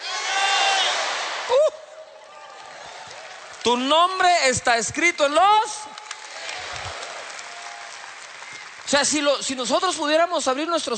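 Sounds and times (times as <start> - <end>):
crowd shouting names: 0.0 - 1.6
speech: 3.6 - 6.0, 8.9 - 10.9.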